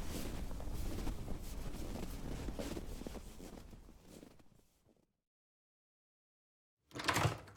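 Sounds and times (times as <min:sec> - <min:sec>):
blustery wind outdoors on a freezing day: 0:00.0 - 0:03.9.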